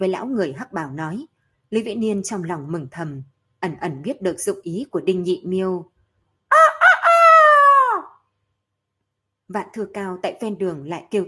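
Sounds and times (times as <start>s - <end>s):
speech: 0.0s - 5.9s, 9.5s - 11.2s
roosters crowing: 6.5s - 8.2s.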